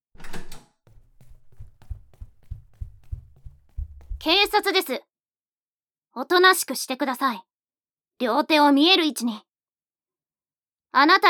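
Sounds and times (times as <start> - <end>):
door being unlocked and opened: 0.2 - 0.8
speech: 4.2 - 5.1, 6.2 - 7.5, 8.2 - 9.5, 10.9 - 11.2.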